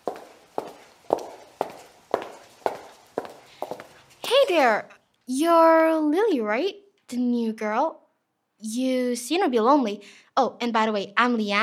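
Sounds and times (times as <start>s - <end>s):
boots clicking on a floor: 0.0s - 4.8s
speech: 4.5s - 8.0s, 8.6s - 11.6s.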